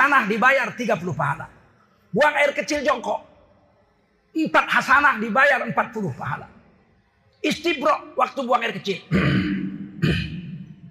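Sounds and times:
speech: 0.1s - 3.3s, 4.4s - 6.5s, 7.4s - 10.3s
throat clearing: 9.1s - 10.7s.

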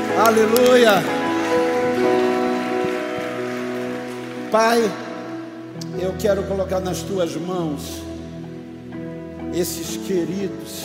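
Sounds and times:
audience applauding: 0.0s - 5.6s
sustained musical tones: 0.0s - 6.2s
speech: 0.2s - 1.2s, 2.0s - 2.4s, 4.5s - 5.0s, 5.8s - 8.1s, 9.6s - 10.8s.

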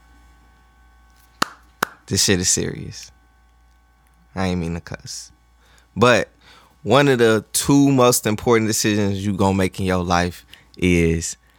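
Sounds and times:
hand claps: 1.3s - 2.1s
speech: 2.1s - 3.2s, 4.4s - 5.4s, 6.0s - 11.4s.

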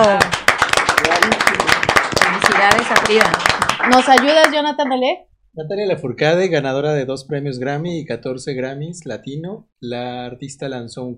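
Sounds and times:
audience clapping: 0.0s - 5.1s
speech: 2.8s - 11.1s.

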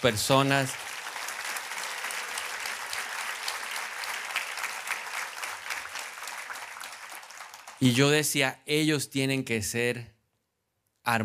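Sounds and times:
speech: 0.0s - 0.9s, 7.8s - 10.2s, 11.1s - 11.2s
audience applause: 0.0s - 8.0s.

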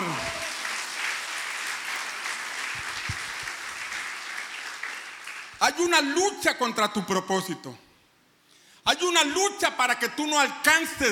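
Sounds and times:
audience applauding: 0.0s - 5.6s
speech: 5.6s - 7.8s, 9.0s - 11.1s.

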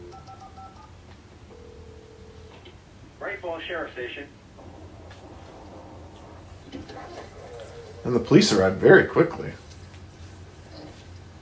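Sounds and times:
steady low line tone hum: 0.0s - 11.4s
speech: 3.4s - 4.4s, 7.0s - 9.6s
murky rumble: 4.6s - 8.2s.

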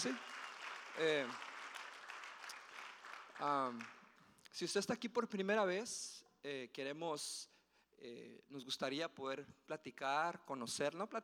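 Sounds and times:
speech: 0.0s - 0.4s, 1.0s - 1.5s, 3.4s - 11.2s
audience applause: 0.0s - 4.0s.

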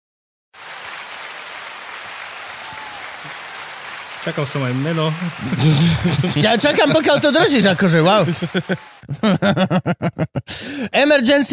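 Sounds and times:
applause: 0.6s - 9.1s
laughter: 4.2s - 10.8s
speech: 4.2s - 11.5s.

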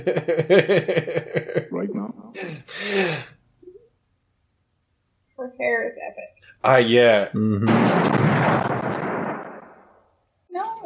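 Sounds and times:
laughter: 0.0s - 3.1s
speech: 0.0s - 3.3s, 5.5s - 8.7s
heavy gunshot blast in a film: 7.7s - 10.0s.

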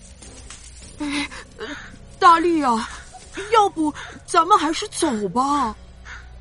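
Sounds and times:
speech: 2.3s - 5.8s
crow cawing: 2.8s - 4.4s, 6.0s - 6.3s.

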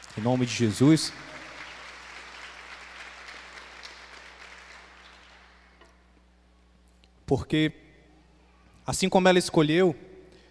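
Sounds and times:
audience applause: 0.0s - 5.8s
speech: 0.2s - 1.3s, 7.3s - 7.9s, 8.9s - 10.1s.

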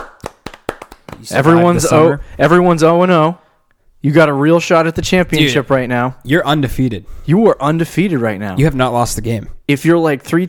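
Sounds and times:
round of applause: 0.0s - 1.7s
speech: 1.2s - 3.4s, 4.0s - 10.4s.

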